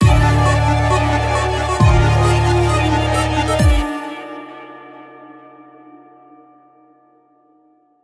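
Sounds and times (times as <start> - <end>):
minor key intro music: 0.0 - 5.0.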